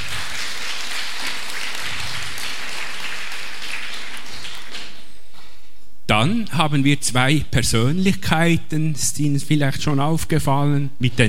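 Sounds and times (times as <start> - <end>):
audience applause: 0.0 - 5.0
speech: 6.2 - 11.2.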